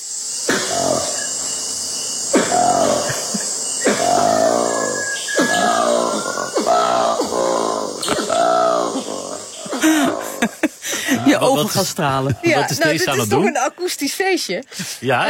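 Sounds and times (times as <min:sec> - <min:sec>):
high-pitched insect hiss: 0:00.0 - 0:15.2
black monkey grunting calls: 0:00.5 - 0:12.5
laughter: 0:02.7 - 0:04.2, 0:09.5 - 0:13.8
speech: 0:11.4 - 0:15.2.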